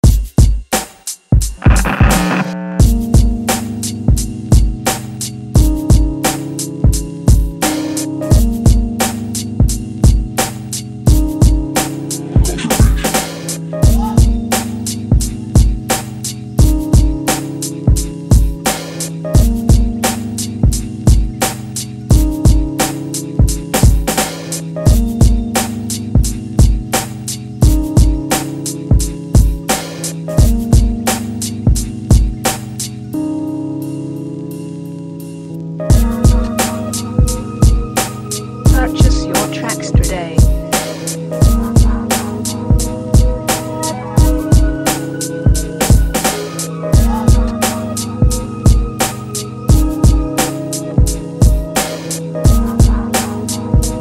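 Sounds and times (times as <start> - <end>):
hard old school boom bap hip hop beat: 0.0 - 32.8, 35.9 - 54.0.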